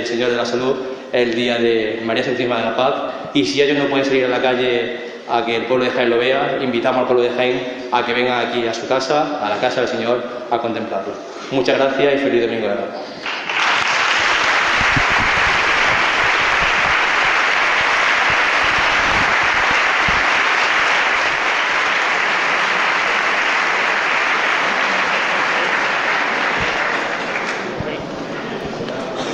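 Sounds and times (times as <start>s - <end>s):
speech: 0.0s - 13.3s
applause from brotherhood members: 13.2s - 28.7s.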